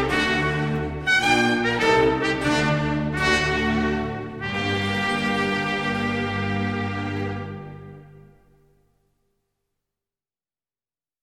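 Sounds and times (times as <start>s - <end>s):
trumpet concerto: 0.0s - 8.6s.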